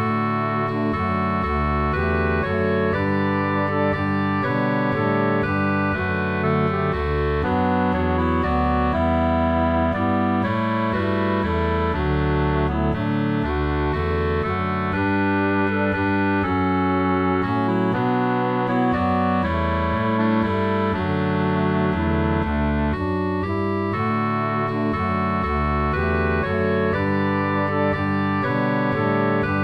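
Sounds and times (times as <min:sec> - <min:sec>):
bass line: 0:00.0 - 0:29.6
melody: 0:00.0 - 0:29.6.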